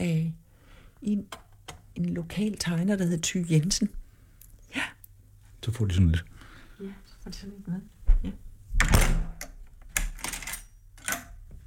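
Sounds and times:
speech: 0:01.0 - 0:01.4, 0:02.0 - 0:04.0, 0:05.6 - 0:08.5
heavy burglar-proof iron cabinet door shutting with a metallic thud: 0:08.8 - 0:09.4.

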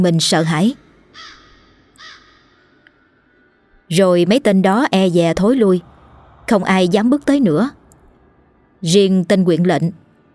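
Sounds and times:
speech: 0:00.0 - 0:01.4, 0:03.9 - 0:05.9, 0:06.5 - 0:07.8, 0:08.8 - 0:10.0
crows cawing loudly: 0:01.1 - 0:02.8.

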